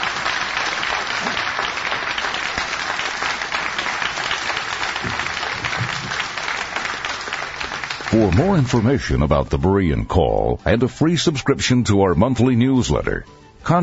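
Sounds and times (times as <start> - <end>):
sustained audience applause: 0.0 - 9.6
speech: 8.2 - 13.8.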